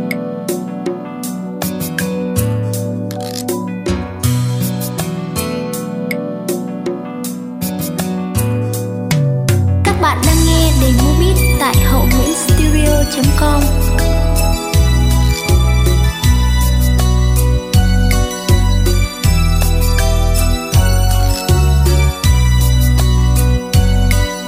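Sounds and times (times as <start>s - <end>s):
music beat: 0.1s - 5.2s, 6.1s - 24.4s.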